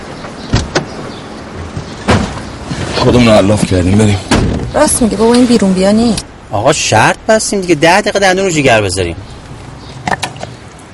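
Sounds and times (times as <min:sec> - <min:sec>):
car doors thudding shut as people get in: 0:00.5 - 0:02.5, 0:04.2 - 0:04.8
speech: 0:03.0 - 0:09.3.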